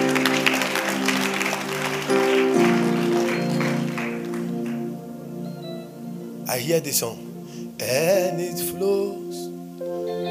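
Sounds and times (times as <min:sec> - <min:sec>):
audience clapping: 0:00.0 - 0:05.1
speech: 0:06.6 - 0:07.3, 0:07.9 - 0:09.2.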